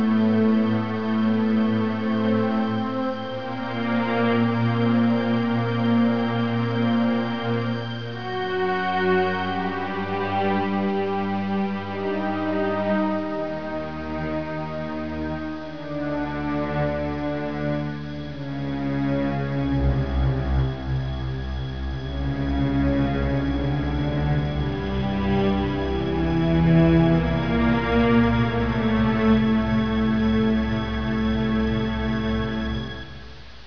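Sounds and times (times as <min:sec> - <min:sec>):
scary music: 0:00.0 - 0:33.3.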